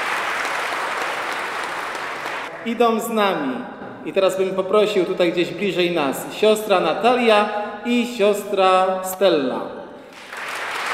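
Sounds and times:
crowd applause at a pilgrimage gathering: 0.0s - 2.6s, 10.1s - 10.9s
speech: 2.6s - 9.8s.

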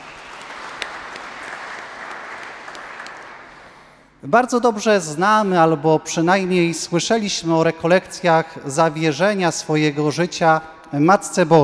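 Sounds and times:
audience applause: 0.0s - 3.8s
speech: 4.2s - 11.6s.

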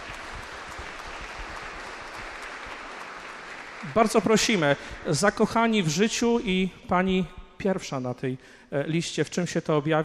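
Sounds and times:
audience applause: 0.0s - 5.4s
speech: 3.8s - 10.0s.

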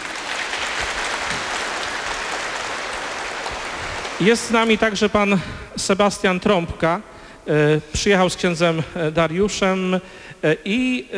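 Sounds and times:
loud applause from audience: 0.0s - 5.6s
speech: 4.2s - 11.1s.

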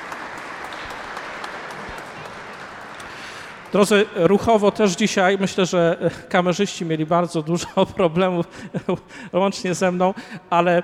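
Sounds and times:
crowd applauding: 0.0s - 4.6s
speech: 3.7s - 10.8s.

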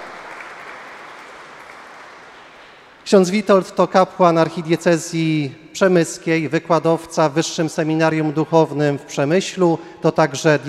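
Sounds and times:
audience applauding a priest in a sanctuary: 0.0s - 3.0s
speech: 3.1s - 10.6s.

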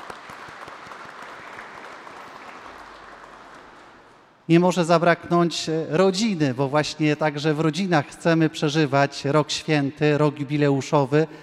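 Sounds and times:
audience applause: 0.0s - 4.3s
speech: 4.5s - 11.4s.

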